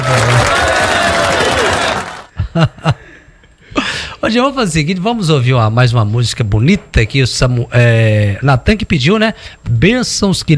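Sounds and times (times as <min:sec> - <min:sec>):
clapping: 0:00.0 - 0:02.3
crowd noise: 0:00.0 - 0:02.3
speech: 0:02.6 - 0:03.0, 0:04.3 - 0:10.5.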